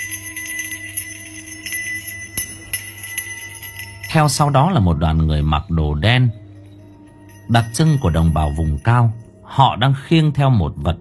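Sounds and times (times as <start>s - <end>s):
bell jingling on top of a walking stick: 0.0s - 5.6s, 6.7s - 9.6s
speech: 4.1s - 6.4s, 7.5s - 10.9s.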